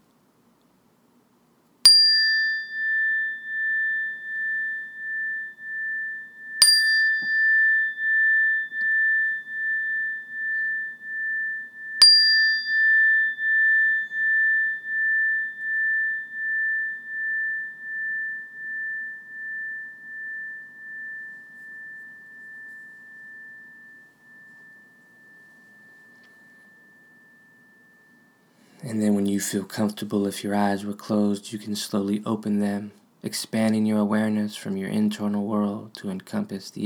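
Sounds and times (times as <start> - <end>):
meditation bell ringing: 1.9 - 29.2
speech: 28.9 - 36.8.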